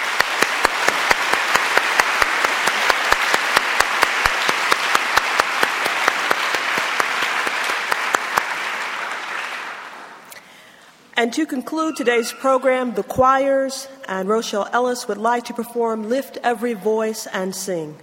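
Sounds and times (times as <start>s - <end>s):
crowd applause: 0.0s - 10.3s
speech: 11.2s - 18.0s.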